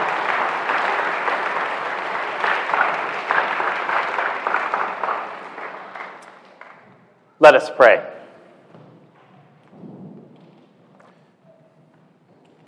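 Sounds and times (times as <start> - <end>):
audience applause: 0.0 - 7.0
speech: 7.4 - 8.2.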